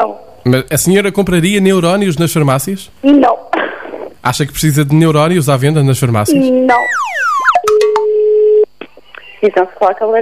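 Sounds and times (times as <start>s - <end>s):
speech: 0.0s - 3.6s, 4.2s - 7.2s, 9.4s - 10.2s
electronic telephone chirps: 6.3s - 8.3s
telephone line tone as a radio station places a call: 6.3s - 8.7s.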